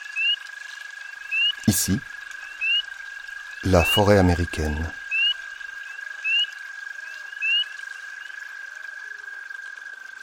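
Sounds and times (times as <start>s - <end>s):
frogs croaking by a river: 0.0s - 10.2s
speech: 1.7s - 2.2s, 3.6s - 5.0s.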